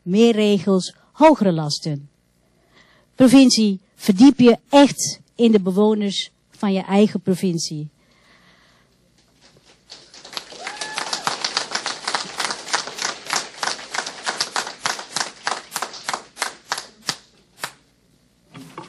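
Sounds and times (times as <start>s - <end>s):
speech: 0.0s - 2.1s, 3.2s - 8.0s
audience clapping: 9.4s - 17.8s.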